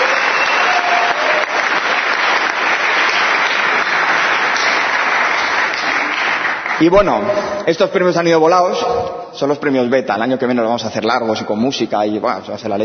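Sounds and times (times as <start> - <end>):
audience applause: 0.0 - 7.2
speech: 6.8 - 12.8.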